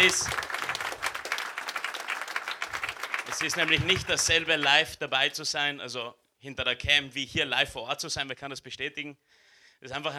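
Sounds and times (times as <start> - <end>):
speech: 0.0 - 0.4, 3.4 - 10.1
audience applause: 0.0 - 4.8.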